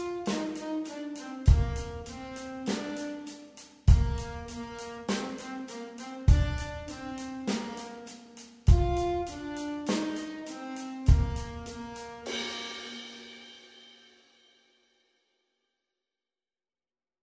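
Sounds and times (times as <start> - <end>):
alto saxophone playing rock: 0.0 - 13.1.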